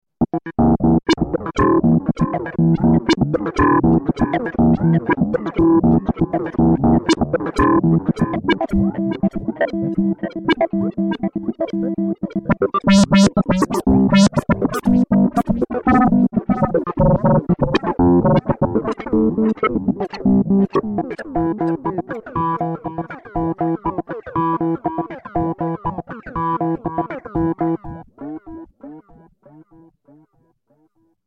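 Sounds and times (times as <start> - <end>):
synthesizer arpeggio with echo: 0.6 - 29.6.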